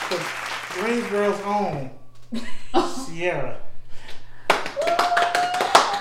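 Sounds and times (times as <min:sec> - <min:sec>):
round of applause: 0:00.0 - 0:01.7, 0:04.5 - 0:05.9
speech: 0:00.1 - 0:03.7.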